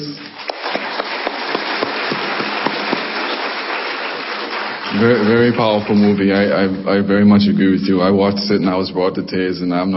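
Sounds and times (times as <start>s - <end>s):
audience applause: 0.2s - 6.6s
speech: 5.0s - 9.9s.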